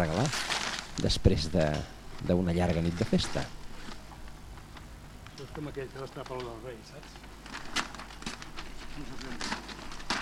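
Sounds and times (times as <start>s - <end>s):
wrapping paper being torn off: 0.0s - 1.1s, 7.3s - 10.2s
speech: 0.0s - 3.6s, 5.4s - 7.4s, 9.0s - 9.7s.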